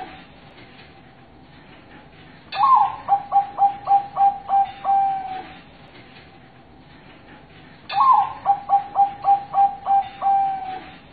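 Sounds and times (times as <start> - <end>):
zebra dove cooing master song: 2.6 - 5.6, 7.9 - 11.0.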